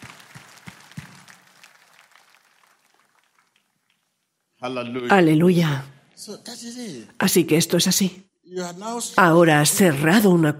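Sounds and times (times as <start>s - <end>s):
audience applause: 0.0s - 4.4s
speech: 4.6s - 10.5s.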